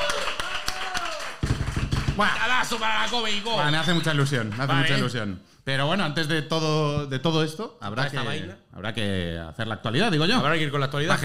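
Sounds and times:
audience applause: 0:00.0 - 0:03.4
speech: 0:02.2 - 0:11.2.

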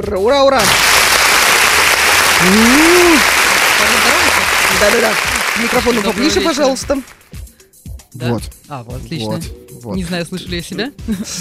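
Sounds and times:
speech: 0:00.0 - 0:01.0, 0:02.4 - 0:03.4, 0:04.7 - 0:07.2, 0:08.2 - 0:11.3
audience applause: 0:00.6 - 0:07.2.

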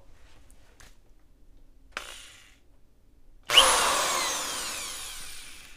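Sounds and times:
power drill running: 0:01.9 - 0:02.6, 0:03.5 - 0:05.7.

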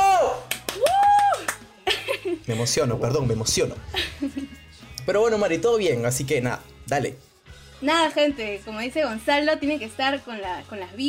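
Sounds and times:
sliding high-pitched vocal whoop: 0:00.0 - 0:01.6
hands clapping: 0:00.2 - 0:01.8
laughter: 0:01.8 - 0:02.8, 0:03.9 - 0:04.6
speech: 0:02.5 - 0:11.0.

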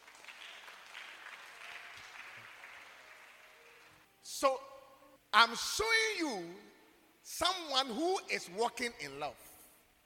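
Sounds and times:
audience clapping: 0:00.0 - 0:04.1
speech: 0:04.4 - 0:04.7, 0:05.3 - 0:09.4.

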